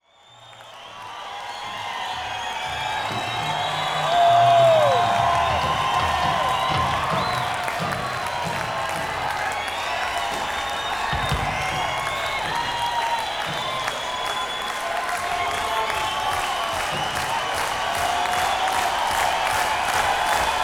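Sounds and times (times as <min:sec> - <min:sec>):
crowd: 0:00.0 - 0:20.6.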